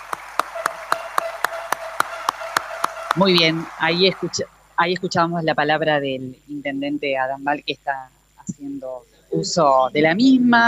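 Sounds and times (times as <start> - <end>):
audience applause: 0.0 - 4.4
speech: 3.2 - 10.6.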